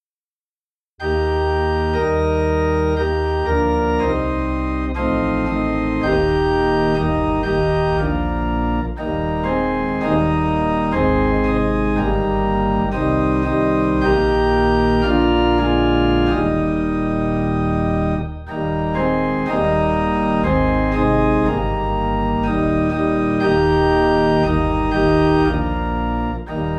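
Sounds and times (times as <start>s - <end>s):
low organ in E flat: 1.0s - 26.7s.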